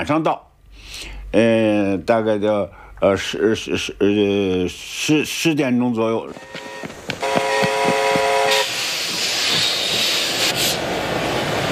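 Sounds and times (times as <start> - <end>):
speech: 0.0 - 7.2
train from the Soviet Union arriving at the station: 6.2 - 11.7.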